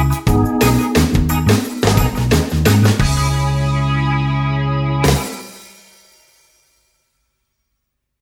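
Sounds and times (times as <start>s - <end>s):
reggae blues guitar: 0.0s - 5.5s.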